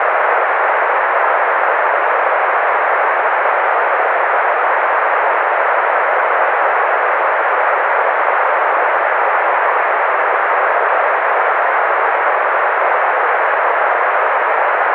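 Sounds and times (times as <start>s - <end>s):
noise: 0.0s - 14.9s.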